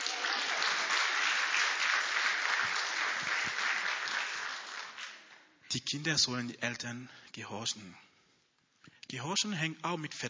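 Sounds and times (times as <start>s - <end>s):
audience clapping: 0.0s - 5.5s
speech: 5.7s - 8.0s, 9.1s - 10.2s.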